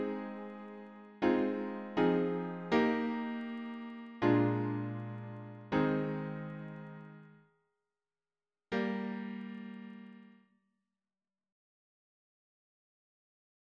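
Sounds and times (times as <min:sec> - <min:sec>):
piano harmony: 0:00.0 - 0:07.3, 0:08.8 - 0:10.2.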